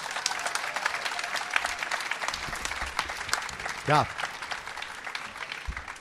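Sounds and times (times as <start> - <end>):
audience applause: 0.0 - 5.9
speech: 3.9 - 4.2.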